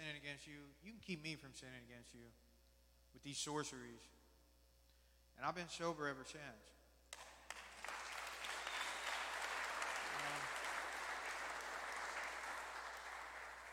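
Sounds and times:
speech: 0.1s - 2.4s, 3.1s - 4.2s, 5.4s - 6.8s
crowd applauding: 7.2s - 13.7s.

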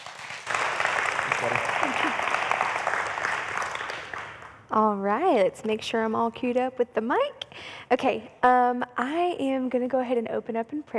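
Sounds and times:
crowd applause: 0.0s - 4.6s
speech: 1.4s - 2.3s, 4.7s - 10.9s.

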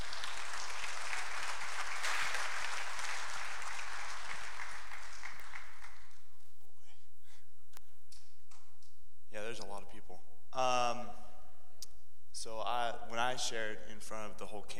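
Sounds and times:
audience applause: 0.0s - 6.2s
speech: 9.5s - 11.2s, 12.4s - 14.7s.

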